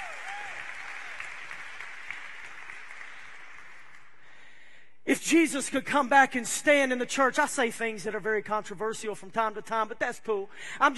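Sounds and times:
faint cheers: 0.0s - 1.5s
audience applause: 0.0s - 4.2s
speech: 5.1s - 10.9s.

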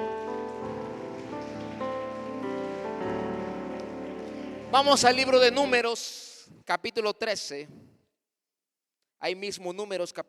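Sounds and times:
audience applause: 0.0s - 5.8s
speech: 4.7s - 7.8s, 9.2s - 10.2s.

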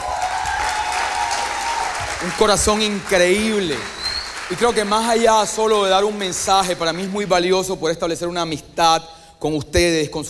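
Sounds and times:
audience applause: 0.0s - 7.8s
speech: 2.2s - 10.2s.

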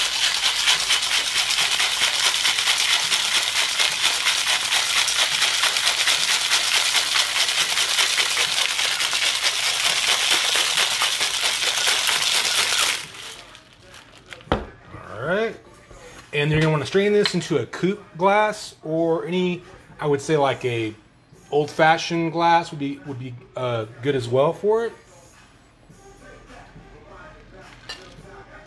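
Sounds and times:
cocktail shaker shaken hard: 0.0s - 14.2s
speech: 16.9s - 25.0s.

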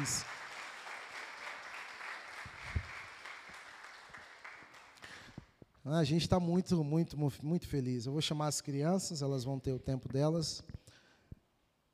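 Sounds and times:
speech: 0.0s - 0.3s, 5.8s - 10.8s
audience applause: 0.0s - 5.2s.

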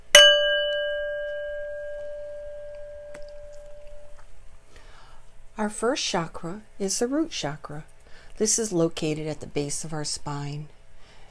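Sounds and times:
singing bowl struck and ringing: 0.0s - 4.2s
speech: 5.6s - 10.8s.

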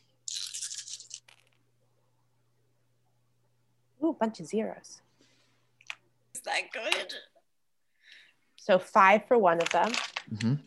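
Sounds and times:
low steady hum: 0.0s - 10.6s
speech: 4.0s - 5.1s, 6.5s - 7.3s, 8.7s - 10.6s
handful of dice rattling and clattering: 9.6s - 10.3s.

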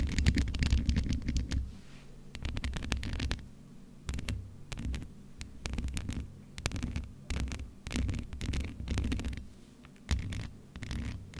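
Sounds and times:
scratching and rubbing on a microphone: 0.0s - 1.7s, 2.4s - 3.4s, 4.1s - 11.3s.

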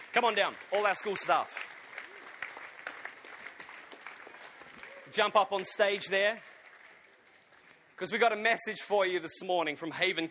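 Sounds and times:
round of applause from a crowd: 0.0s - 8.0s
speech: 0.2s - 1.7s, 5.1s - 6.5s, 8.0s - 10.2s.

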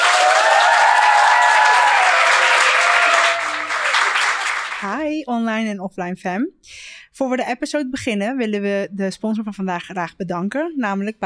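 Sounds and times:
cheering whistles: 0.0s - 4.8s
loud crowd applause: 0.0s - 4.9s
speech: 4.8s - 11.2s.

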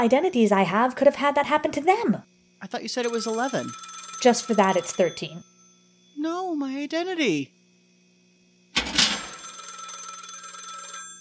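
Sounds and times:
speech: 0.0s - 5.5s, 6.2s - 7.6s
telephone ringing: 3.0s - 6.0s, 8.8s - 11.1s.

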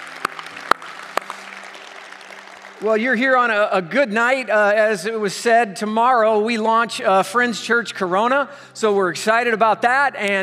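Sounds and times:
audience clapping: 0.0s - 3.9s
speech: 2.8s - 10.4s.

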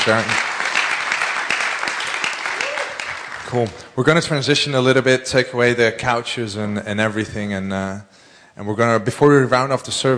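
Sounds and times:
speech: 0.0s - 0.4s, 3.5s - 10.1s
audience applause: 0.0s - 3.8s.

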